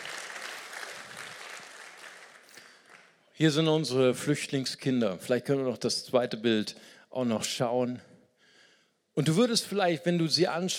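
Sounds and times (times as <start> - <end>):
audience applause: 0.0 - 3.2
speech: 3.4 - 8.1, 9.2 - 10.7.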